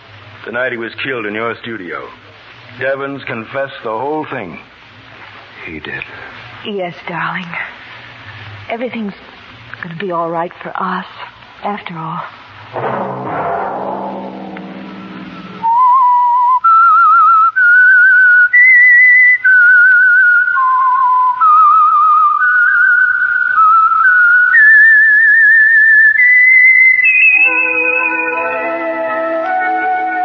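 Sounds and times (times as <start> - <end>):
speech: 0.4 - 4.7, 5.7 - 7.7, 8.7 - 12.9
short burst of broadband noise: 12.4 - 16.5
whistled signal tune: 14.9 - 30.2.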